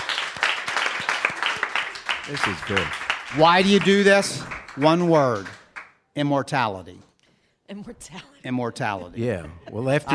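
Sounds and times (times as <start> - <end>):
people clapping: 0.0 - 6.0
speech: 2.3 - 5.6, 6.2 - 7.1, 7.7 - 10.1.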